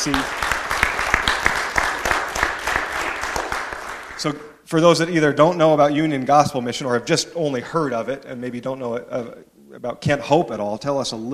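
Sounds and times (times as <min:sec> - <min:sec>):
speech: 0:00.0 - 0:00.4, 0:04.2 - 0:11.3
audience applause: 0:00.0 - 0:04.3.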